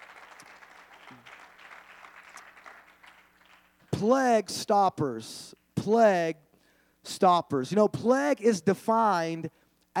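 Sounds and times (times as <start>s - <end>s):
audience hand clapping: 0.0s - 4.2s
speech: 4.0s - 6.4s, 7.1s - 9.9s.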